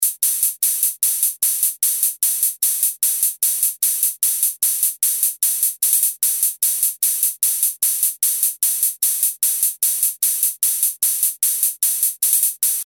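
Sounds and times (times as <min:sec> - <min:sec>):
hissing hi-hats: 0:00.0 - 0:12.8.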